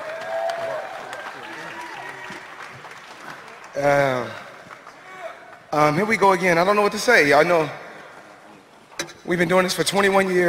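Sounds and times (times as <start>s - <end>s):
press conference audience applause: 0.0s - 5.6s
speech: 3.8s - 4.4s, 5.7s - 7.8s, 9.3s - 10.4s.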